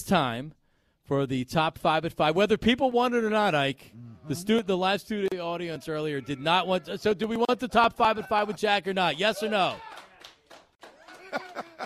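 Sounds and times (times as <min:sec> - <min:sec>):
speech: 0:00.0 - 0:10.0
laughter: 0:04.0 - 0:10.2, 0:10.8 - 0:11.8
two people clapping: 0:09.6 - 0:11.8.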